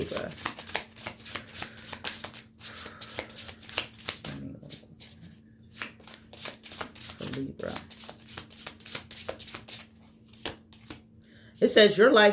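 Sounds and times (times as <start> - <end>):
soulmate oracle cards being shuffled by hand: 0.0 - 11.0
speech: 7.4 - 7.9, 11.6 - 12.3.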